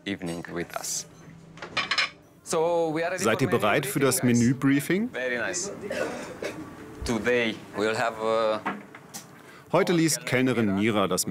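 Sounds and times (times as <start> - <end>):
speech: 0.1 - 1.1, 2.5 - 8.8, 9.7 - 11.3
plates and cutlery clinking as a table is laid: 0.1 - 2.2.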